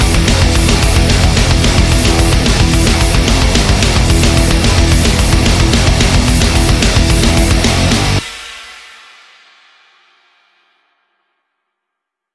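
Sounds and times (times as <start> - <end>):
instrumental music: 0.0 - 8.5.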